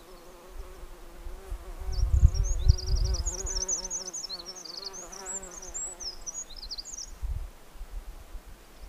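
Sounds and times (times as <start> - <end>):
wind: 0.0 - 8.8
Eurasian wren singing: 1.8 - 7.2.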